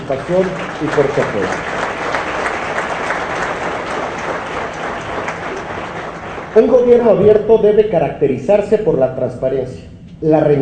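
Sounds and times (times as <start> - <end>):
audience applause: 0.0 - 7.2
speech: 0.1 - 1.8, 6.6 - 10.5.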